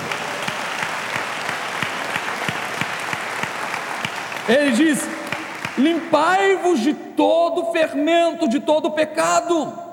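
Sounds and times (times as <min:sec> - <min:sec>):
audience applause: 0:00.0 - 0:06.4
speech: 0:04.5 - 0:05.2, 0:05.8 - 0:09.8.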